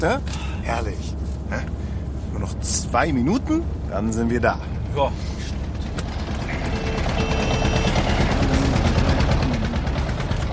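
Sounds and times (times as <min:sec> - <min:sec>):
speech: 0:00.0 - 0:01.8, 0:02.4 - 0:05.5
tractor overtaking a car: 0:05.5 - 0:10.5.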